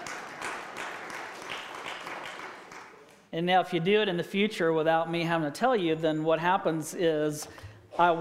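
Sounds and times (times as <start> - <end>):
audience clapping: 0.0 - 3.3
speech: 3.3 - 8.1.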